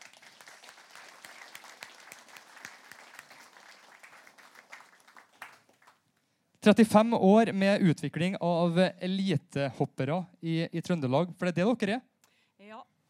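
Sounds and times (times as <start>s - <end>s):
audience applauding: 0.0s - 6.0s
speech: 6.6s - 12.1s.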